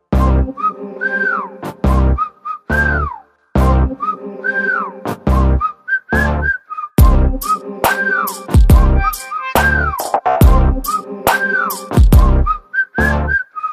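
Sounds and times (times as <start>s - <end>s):
background music: 0.0s - 13.5s.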